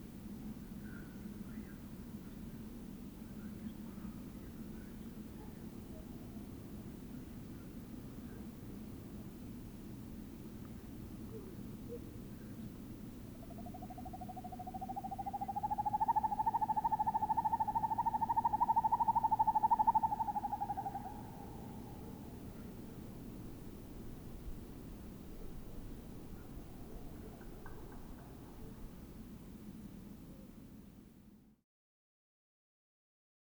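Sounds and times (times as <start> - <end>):
two male Northern Hawk Owls hooting: 13.4 - 28.9.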